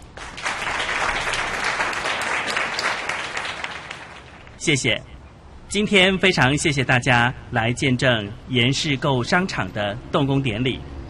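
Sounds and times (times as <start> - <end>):
audience applause: 0.0 - 4.6
speech: 4.6 - 10.9.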